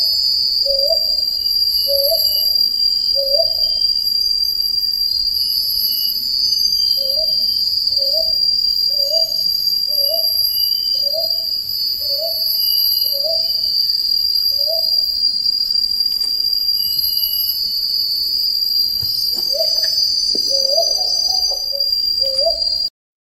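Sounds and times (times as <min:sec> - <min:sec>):
Brown Hawk Owl calling: 0:00.0 - 0:01.2, 0:01.8 - 0:03.8, 0:06.9 - 0:13.8, 0:14.5 - 0:15.2, 0:19.0 - 0:22.9.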